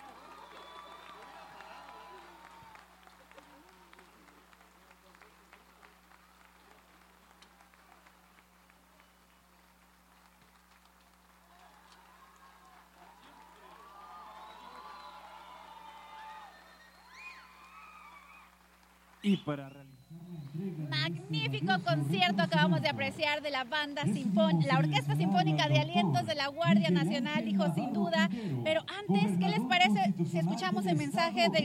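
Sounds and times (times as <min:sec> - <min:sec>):
crowd applauding: 0:00.0 - 0:28.5
whoops and high whistles: 0:00.3 - 0:02.2, 0:14.0 - 0:18.5
speech: 0:19.2 - 0:19.9, 0:20.6 - 0:31.6.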